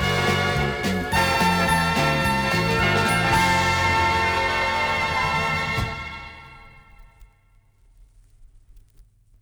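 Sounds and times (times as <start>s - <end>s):
Christmas song: 0.0s - 7.2s.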